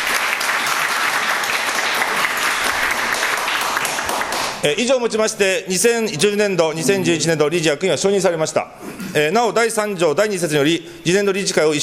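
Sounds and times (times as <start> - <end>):
audience applause to approve officers: 0.0 - 4.6
speech: 4.6 - 11.8.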